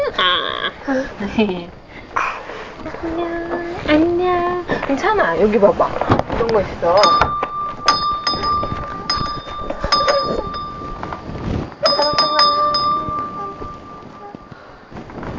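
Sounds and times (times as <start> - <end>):
speech: 0.2 - 1.8, 2.8 - 7.4
small bell ringing: 6.9 - 14.7.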